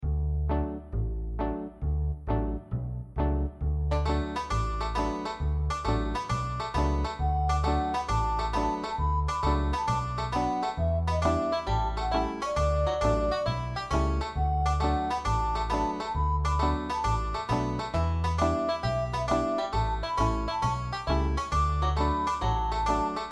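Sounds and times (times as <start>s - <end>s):
MIDI music: 0.5s - 23.3s.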